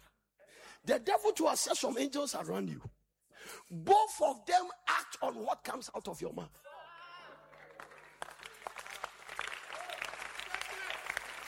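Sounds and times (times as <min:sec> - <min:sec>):
speech: 0:00.8 - 0:06.7
audience clapping: 0:07.4 - 0:11.4.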